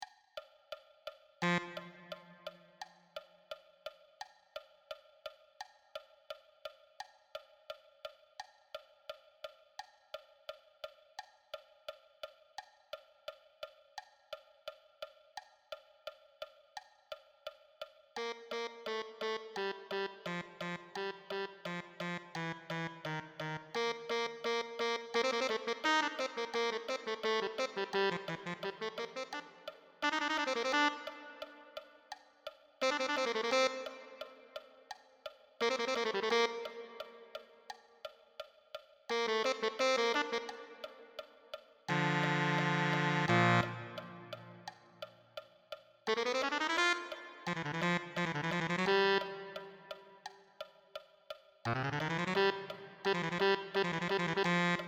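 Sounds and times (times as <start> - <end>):
tenor saxophone: 1.4 - 2.7, 18.2 - 32.1, 32.8 - 34.9, 35.6 - 37.5, 39.1 - 41.2, 41.9 - 44.8, 46.1 - 50.0, 51.7 - 54.8.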